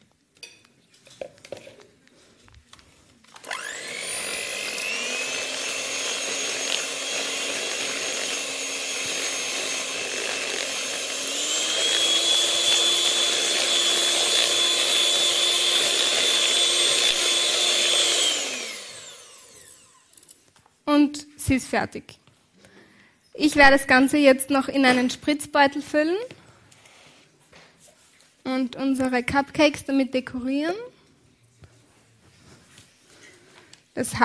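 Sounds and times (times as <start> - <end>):
electric hand mixer whipping chocolate cream: 3.3 - 20.2
speech: 21.5 - 22.2, 23.4 - 26.4, 28.6 - 30.9, 34.0 - 34.2.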